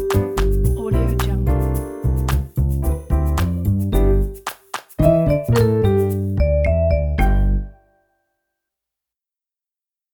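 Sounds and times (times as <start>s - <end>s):
happy jazz music: 0.0s - 7.9s.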